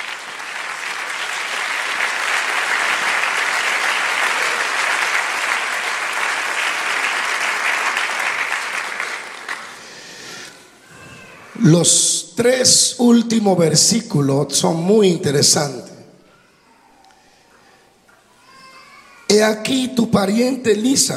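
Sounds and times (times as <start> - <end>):
audience applauding loudly: 0.0 - 10.5
speech: 11.6 - 15.9, 19.3 - 21.1.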